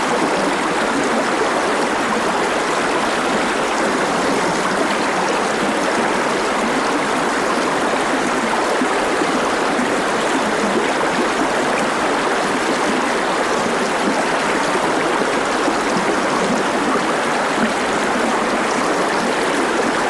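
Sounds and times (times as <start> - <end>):
close Lyna river water at medium flow: 0.0 - 20.0.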